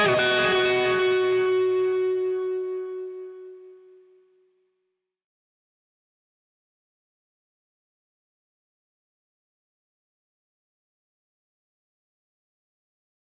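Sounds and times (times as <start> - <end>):
guitar in C: 0.0 - 4.5.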